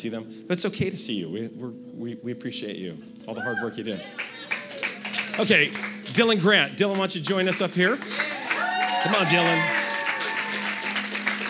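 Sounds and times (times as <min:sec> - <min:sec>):
speech: 0:00.0 - 0:04.4, 0:05.4 - 0:08.3, 0:09.0 - 0:09.8
family cheering: 0:03.4 - 0:11.4
family clapping: 0:04.0 - 0:11.4.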